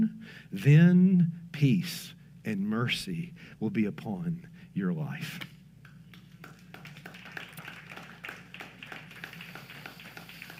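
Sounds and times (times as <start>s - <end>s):
speech: 0.3s - 5.5s
audience applause: 6.2s - 10.5s.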